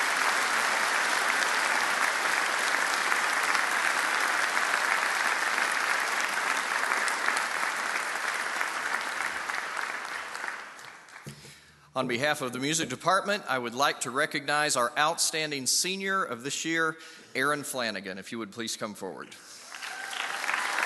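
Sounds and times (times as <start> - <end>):
audience applause for a student's mathematics award: 0.0 - 11.3, 19.6 - 20.8
speech: 12.0 - 19.5.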